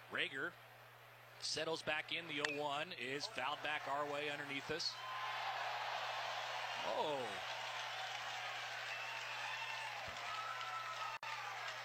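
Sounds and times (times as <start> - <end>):
speech: 0.1 - 0.7, 1.4 - 5.1, 6.8 - 7.6
crowd applause at baseball game: 3.4 - 11.8.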